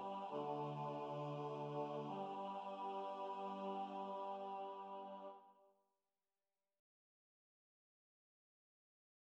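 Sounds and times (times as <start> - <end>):
choral mass music: 0.0 - 5.5.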